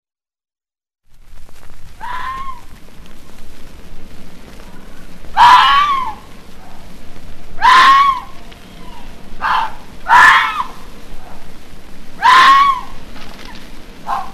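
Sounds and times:
red fox screaming: 2.0 - 2.8, 5.3 - 6.9, 7.5 - 11.5, 12.1 - 14.3.

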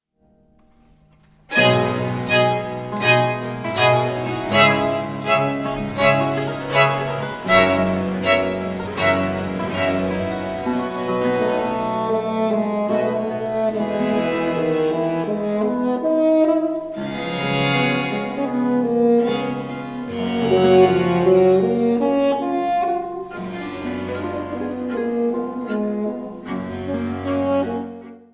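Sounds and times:
bassoon concerto in C major: 1.5 - 28.3.

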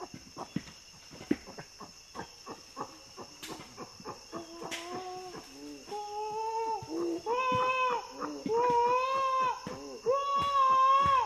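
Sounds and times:
common chimpanzee screams: 4.5 - 11.2.

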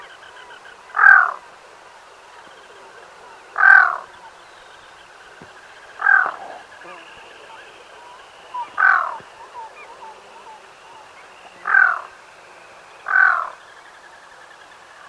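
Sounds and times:
black-throated loon uttering short rasping croaks: 2.6 - 4.4, 5.0 - 12.2, 13.0 - 13.8.

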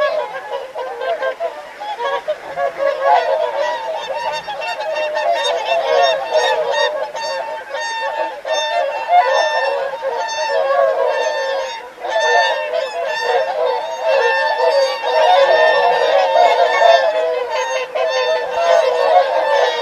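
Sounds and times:
flock of whooper swans calling: 0.0 - 19.8.

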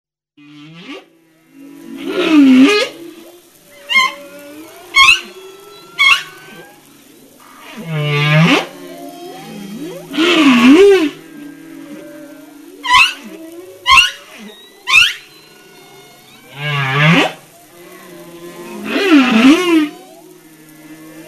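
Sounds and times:
humpback whale song: 0.4 - 21.2.

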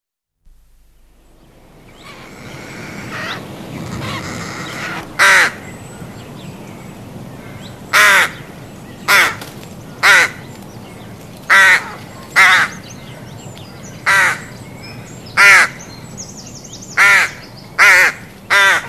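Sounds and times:
rook giving harsh caws: 1.9 - 5.8, 7.3 - 10.5, 11.5 - 12.8, 14.0 - 14.5, 15.4 - 15.8, 17.0 - 18.8.

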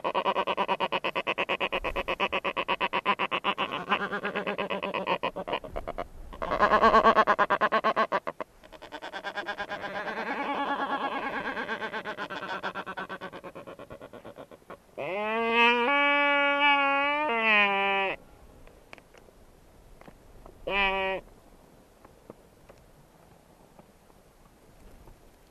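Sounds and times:
black-browed albatross rattling call of harsh pulses: 0.0 - 18.2.

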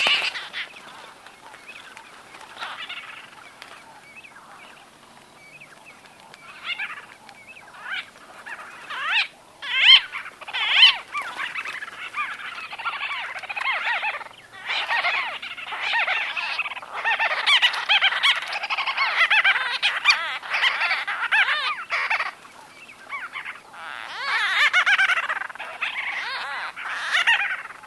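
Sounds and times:
White-fronted bee-eaters giving trilled calls: 0.0 - 27.8.

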